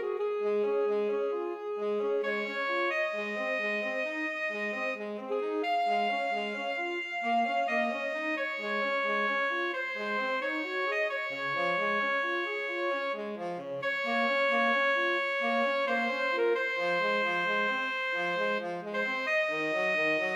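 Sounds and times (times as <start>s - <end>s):
tenor saxophone: 0.0s - 20.3s.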